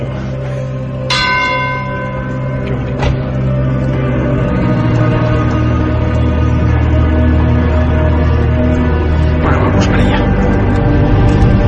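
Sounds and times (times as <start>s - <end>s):
church bells ringing: 0.0s - 11.3s
bright church bell strike: 1.1s - 3.4s.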